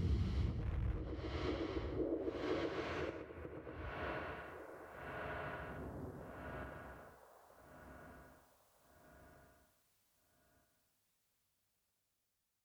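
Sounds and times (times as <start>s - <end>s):
rumble: 0.0s - 7.1s.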